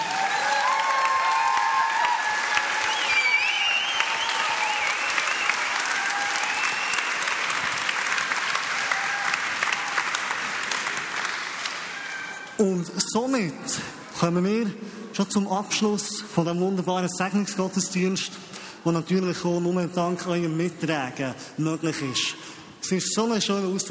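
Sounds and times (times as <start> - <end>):
whistles and cheers: 0.0 - 7.6, 8.6 - 10.3
audience applauding: 0.0 - 12.6
speech: 12.6 - 23.8.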